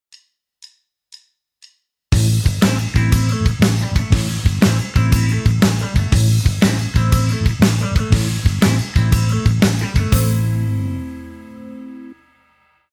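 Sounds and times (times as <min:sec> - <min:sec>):
backing music: 0:02.1 - 0:12.2.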